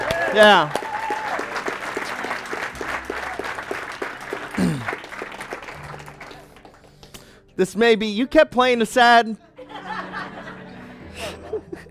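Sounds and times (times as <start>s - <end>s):
audience clapping and cheering: 0.0s - 7.2s
speech: 0.4s - 0.8s, 7.6s - 9.4s
laughter: 9.6s - 11.9s.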